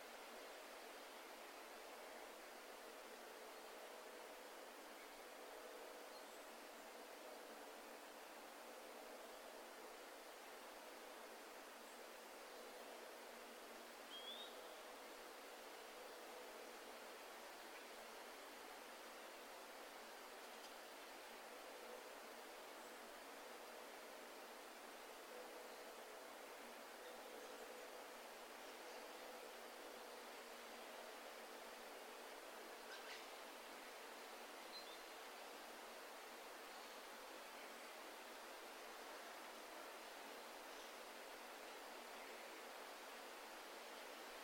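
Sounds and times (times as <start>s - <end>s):
wind sweeping through trees rustling leaves: 0.0s - 44.4s
faint soft ticks: 20.4s - 20.8s.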